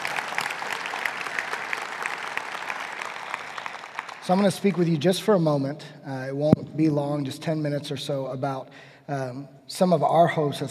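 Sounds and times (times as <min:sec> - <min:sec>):
crowd applauding: 0:00.0 - 0:05.1
speech: 0:04.3 - 0:10.6.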